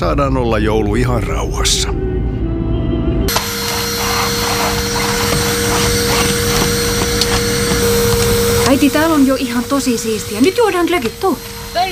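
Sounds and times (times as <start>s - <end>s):
speech: 0.0s - 2.1s, 8.7s - 11.8s
vacuum cleaner running: 3.3s - 11.8s.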